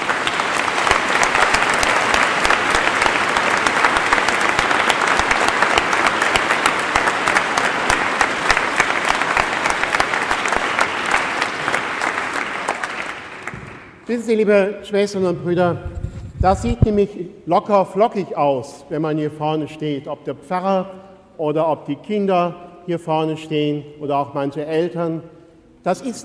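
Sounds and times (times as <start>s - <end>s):
audience clapping: 0.0s - 14.1s
speech: 14.1s - 26.2s.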